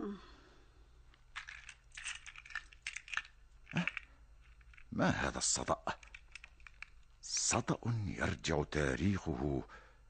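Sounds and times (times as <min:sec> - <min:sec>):
metal basement keys jingling as key cabinet opened: 0:01.3 - 0:05.0, 0:05.6 - 0:07.4
speech: 0:05.0 - 0:06.0, 0:07.5 - 0:09.8.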